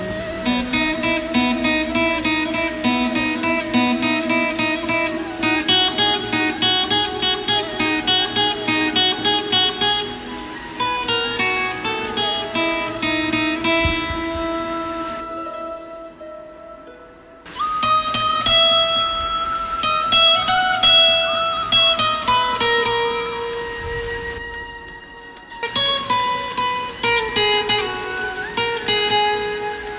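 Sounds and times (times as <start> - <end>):
Krishna flute ringtone: 0.0 - 29.9.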